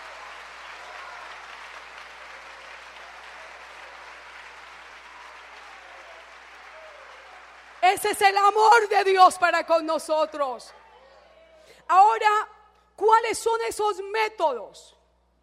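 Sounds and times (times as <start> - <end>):
audience applause: 0.0 - 9.0
speech: 7.9 - 10.8, 11.9 - 15.0.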